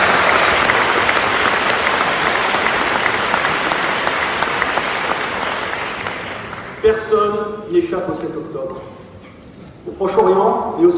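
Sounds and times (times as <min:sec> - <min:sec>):
large audience applause: 0:00.0 - 0:06.8
speech: 0:06.8 - 0:09.0, 0:09.8 - 0:10.9.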